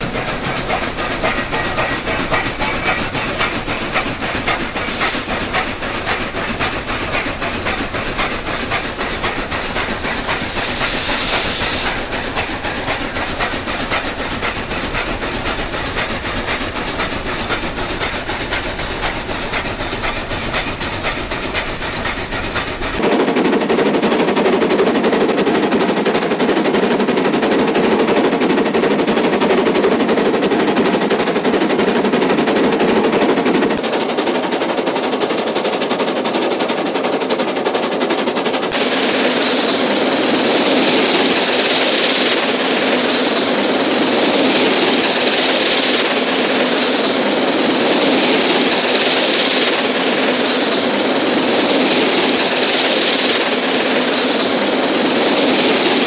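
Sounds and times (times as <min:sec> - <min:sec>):
steam locomotive starting slowly and passing by: 0:00.0 - 0:56.0.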